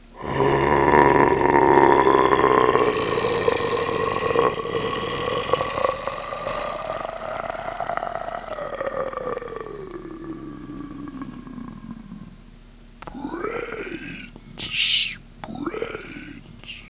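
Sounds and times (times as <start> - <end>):
demon: 0.0 - 12.4, 13.0 - 14.4, 15.4 - 16.4.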